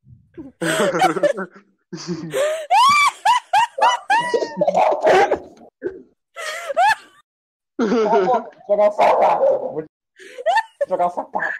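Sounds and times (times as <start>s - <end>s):
laughter: 0.6s - 5.6s, 7.8s - 8.6s, 10.2s - 11.5s
several dogs barking: 9.0s - 9.8s.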